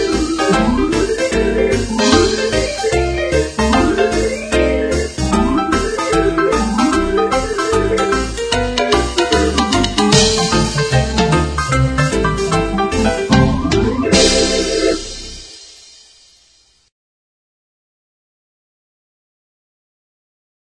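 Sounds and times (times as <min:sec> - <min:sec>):
boogie played on a Hammond organ: 0:00.0 - 0:15.7.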